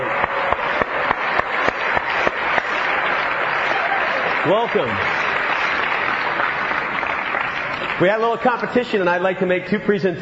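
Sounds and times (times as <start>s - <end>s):
rhythmic clapping: 0.0s - 9.3s
student body applauding new students at a college welcome: 0.0s - 9.3s
speech: 4.4s - 5.2s, 8.0s - 10.1s.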